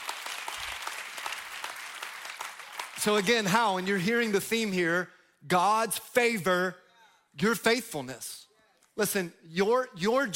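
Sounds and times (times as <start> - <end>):
audience clapping: 0.0 - 4.0
speech: 3.0 - 6.8, 7.4 - 8.4, 9.0 - 10.3.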